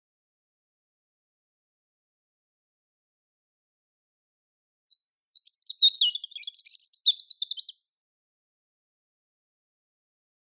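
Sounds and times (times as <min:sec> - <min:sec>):
European robin singing: 0:04.9 - 0:07.9.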